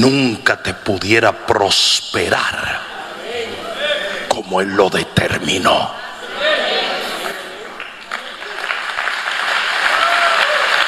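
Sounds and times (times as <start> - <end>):
speech: 0.0 - 3.7, 4.4 - 6.6
audience applause: 7.0 - 10.8.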